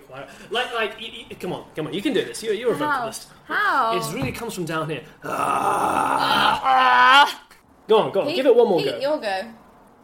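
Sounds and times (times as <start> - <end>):
speech: 0.1 - 9.6
burp: 5.2 - 7.4.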